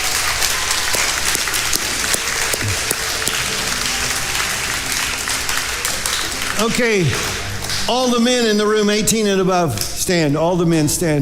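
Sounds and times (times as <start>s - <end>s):
audience applauding: 0.0s - 8.8s
speech: 6.6s - 11.2s.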